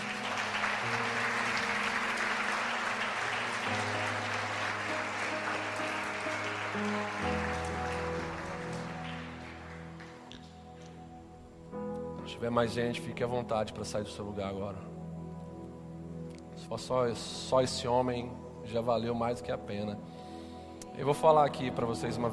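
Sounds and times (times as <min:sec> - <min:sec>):
audience applause: 0:00.0 - 0:10.6
speech: 0:12.4 - 0:15.0, 0:16.7 - 0:20.2, 0:21.0 - 0:22.3.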